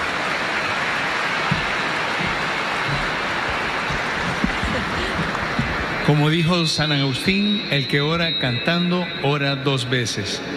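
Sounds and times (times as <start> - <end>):
applause: 0.0 - 6.5
speech: 6.1 - 10.5.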